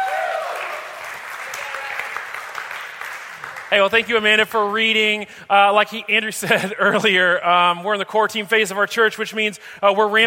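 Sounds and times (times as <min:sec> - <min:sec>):
person whooping: 0:00.0 - 0:00.9
audience clapping: 0:00.0 - 0:04.7
speech: 0:03.7 - 0:10.2.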